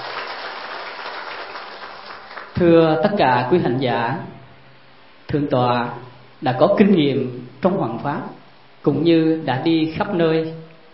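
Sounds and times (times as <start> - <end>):
faint audience applause welcoming a senior Buddhist monk: 0.0 - 2.6
speech: 2.6 - 4.4, 5.3 - 10.6.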